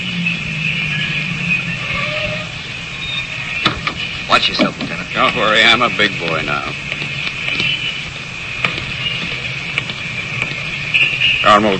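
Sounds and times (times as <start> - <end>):
car engine idling: 0.0 - 11.7
thin high whine: 0.0 - 11.7
speech: 4.4 - 6.8, 11.4 - 11.7.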